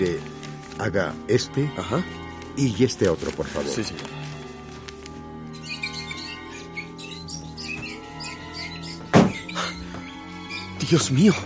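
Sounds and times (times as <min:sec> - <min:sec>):
speech: 0:00.0 - 0:04.2, 0:10.9 - 0:11.4
high chittering squeaks: 0:05.5 - 0:11.4.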